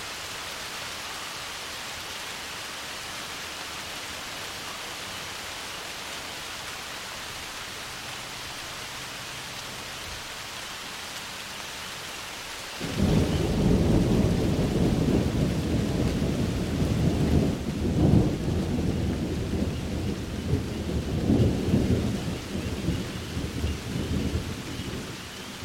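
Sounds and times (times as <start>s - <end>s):
rain: 0.0s - 25.6s
thunder: 12.8s - 25.2s.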